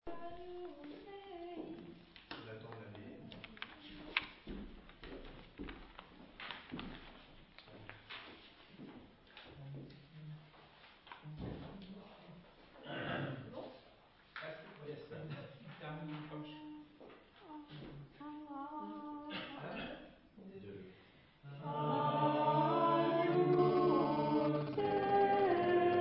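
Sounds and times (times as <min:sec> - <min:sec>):
several voices: 0:21.5 - 0:25.9.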